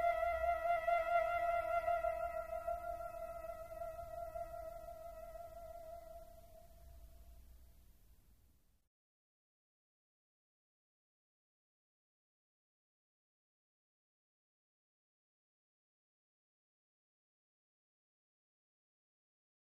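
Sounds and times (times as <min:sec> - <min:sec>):
flute: 0:00.0 - 0:06.8.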